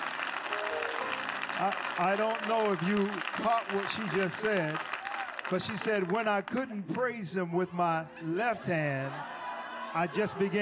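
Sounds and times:
audience clapping hands: 0.0s - 7.3s
speech: 1.6s - 4.8s, 5.5s - 9.3s, 10.0s - 10.6s
laughter: 7.6s - 10.6s.

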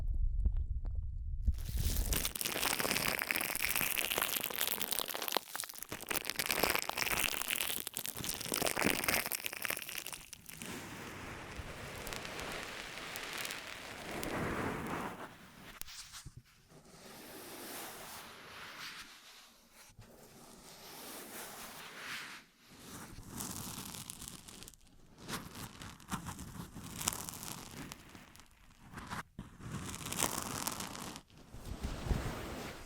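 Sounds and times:
brief low thump: 0.0s - 1.6s
ASMR ear massage rubbing and crinkling rustles: 1.5s - 32.8s.

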